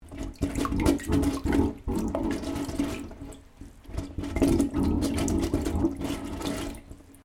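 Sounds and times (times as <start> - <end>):
water gurgling in pipe: 0.0 - 7.2.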